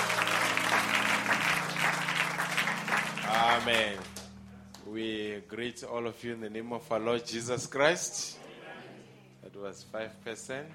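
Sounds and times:
applause: 0.0s - 4.3s
speech: 3.6s - 4.1s, 4.9s - 8.4s, 9.5s - 10.7s.

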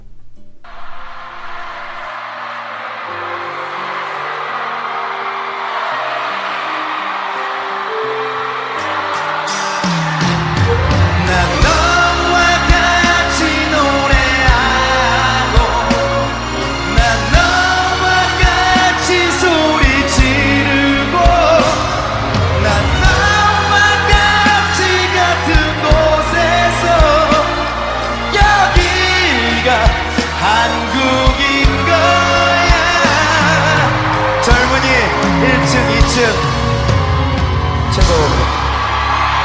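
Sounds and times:
live concert music with a pounding low beat: 0.0s - 39.4s
crowd cheering, whooping and yelling: 0.6s - 39.4s.

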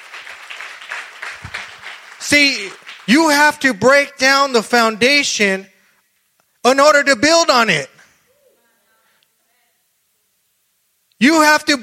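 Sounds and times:
audience clapping: 0.0s - 4.0s
speech: 2.2s - 5.7s, 6.6s - 7.9s, 11.2s - 11.8s.

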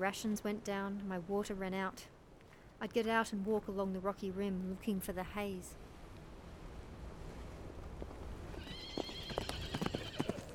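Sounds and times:
speech: 0.0s - 2.2s, 2.8s - 5.9s
horse trotting with hoof clops: 7.8s - 10.5s
horse whinny: 8.6s - 10.5s.

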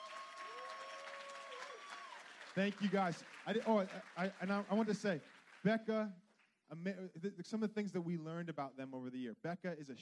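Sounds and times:
audience round of applause: 0.0s - 6.0s
speech: 2.6s - 9.9s.

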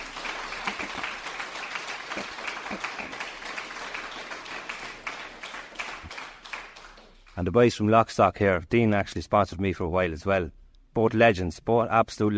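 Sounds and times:
crowd applauding: 0.0s - 7.4s
speech: 7.4s - 12.3s.

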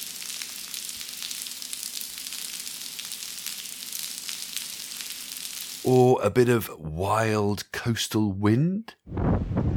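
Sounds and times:
steady rainfall: 0.0s - 5.9s
speech: 5.8s - 9.6s.

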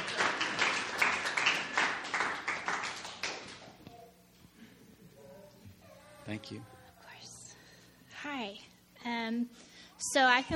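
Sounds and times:
audience clapping: 0.0s - 3.9s
speech: 6.3s - 6.8s, 8.2s - 10.5s.

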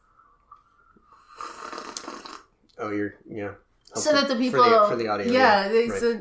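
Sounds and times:
person slurping hot tea: 0.2s - 2.5s
speech: 2.8s - 6.1s.

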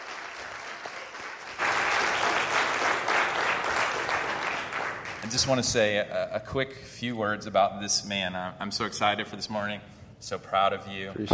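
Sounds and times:
audience applause: 0.0s - 5.6s
speech: 5.3s - 11.3s.

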